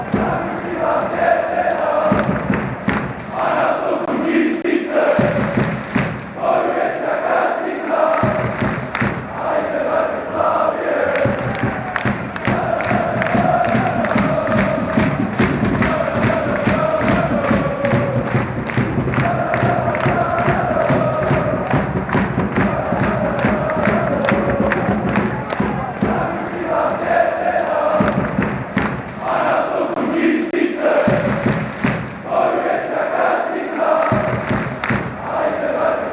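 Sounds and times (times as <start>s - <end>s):
fans chanting: 0.0s - 36.1s.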